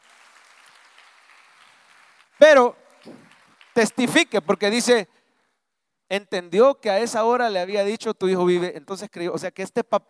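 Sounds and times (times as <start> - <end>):
audience applauding: 0.0 - 5.0
speech: 2.4 - 2.8, 3.8 - 5.2, 6.1 - 10.0.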